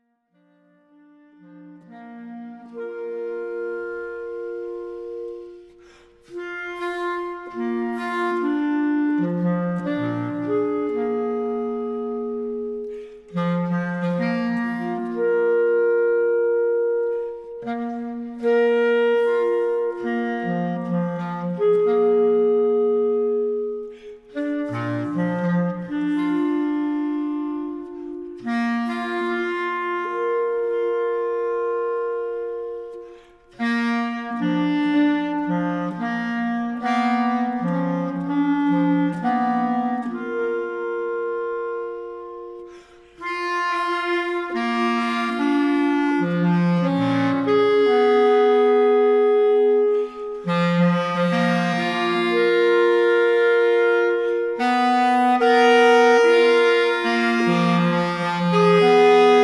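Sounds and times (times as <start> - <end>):
two bass clarinets: 0.0 - 59.4.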